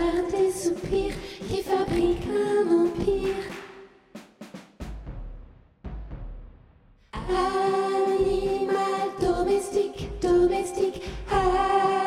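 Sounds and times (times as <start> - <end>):
soprano singing: 0.0 - 3.5, 7.2 - 12.0.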